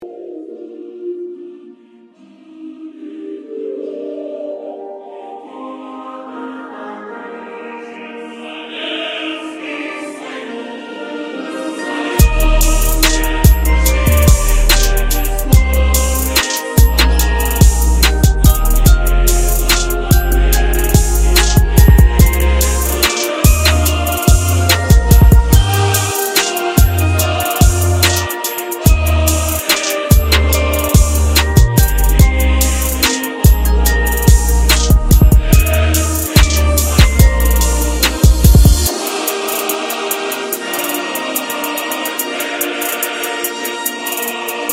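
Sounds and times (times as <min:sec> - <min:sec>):
trap remix of an anthem: 0:12.1 - 0:44.7.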